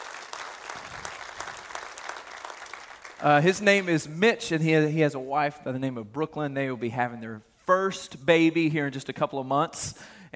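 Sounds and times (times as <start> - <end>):
audience applauding: 0.0 - 4.0
speech: 3.2 - 10.3.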